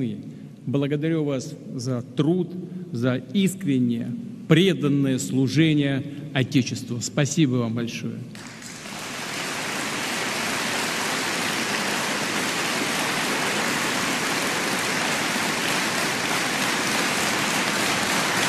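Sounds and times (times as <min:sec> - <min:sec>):
speech: 0:00.0 - 0:08.6
crowd applauding: 0:08.4 - 0:18.4.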